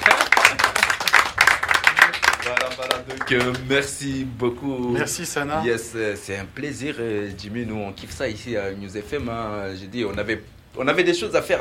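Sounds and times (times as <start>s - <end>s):
girls' team clapping for itself: 0.0s - 3.8s
speech: 2.9s - 11.5s.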